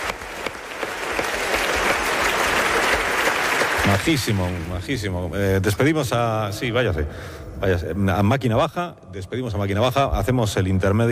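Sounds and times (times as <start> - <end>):
audience applause: 0.0 - 4.9
speech: 3.9 - 11.0.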